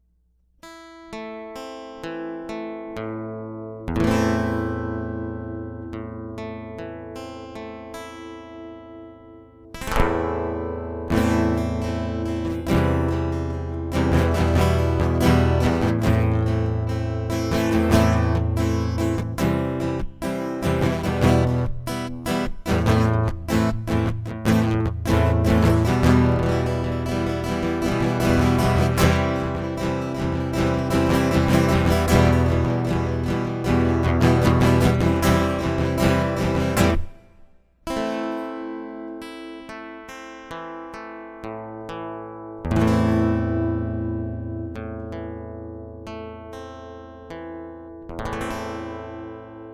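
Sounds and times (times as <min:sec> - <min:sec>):
acoustic music: 0:00.6 - 0:49.7.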